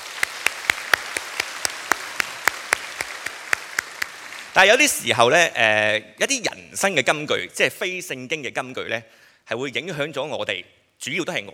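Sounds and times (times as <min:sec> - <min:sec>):
audience applause: 0:00.0 - 0:05.0
speech: 0:04.6 - 0:11.5.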